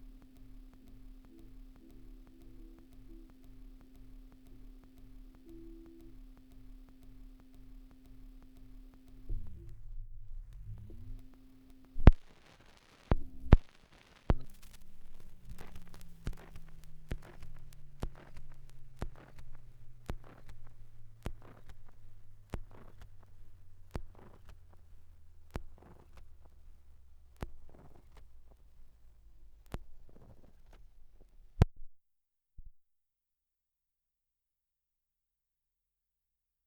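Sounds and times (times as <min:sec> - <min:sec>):
78rpm record surface noise: 0:00.0 - 0:31.8.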